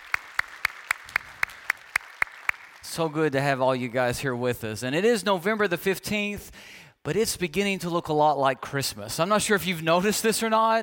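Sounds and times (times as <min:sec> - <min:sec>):
in-person church congregation clapping: 0:00.0 - 0:03.4
speech: 0:02.9 - 0:10.8.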